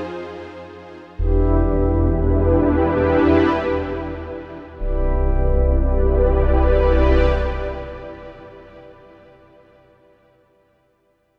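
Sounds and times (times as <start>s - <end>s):
Roland RD-08 synth tempo swell: 1.1s - 9.6s.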